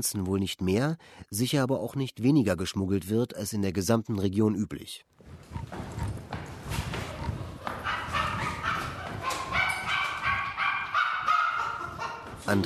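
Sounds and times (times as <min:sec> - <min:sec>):
speech: 0:00.0 - 0:05.8, 0:12.5 - 0:12.6
dog barking and whining in a run-down three-room Soviet-era apartment: 0:05.4 - 0:12.2.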